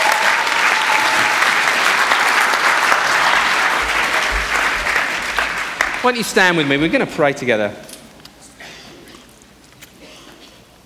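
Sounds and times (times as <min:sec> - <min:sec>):
audience applause: 0:00.0 - 0:07.3
speech: 0:06.0 - 0:07.9.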